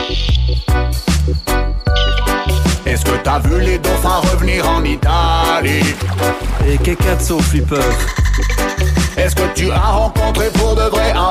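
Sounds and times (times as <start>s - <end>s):
speech: 0.1s - 1.6s, 2.9s - 11.3s
partridges calling: 1.8s - 2.6s, 7.8s - 9.4s.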